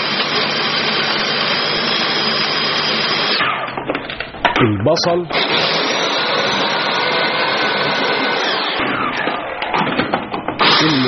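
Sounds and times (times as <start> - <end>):
500-watt kitchen chopper motor whirring as it chops meat: 0.0 - 3.7, 5.3 - 9.8, 10.6 - 11.0
speech: 4.6 - 5.8, 10.8 - 11.0.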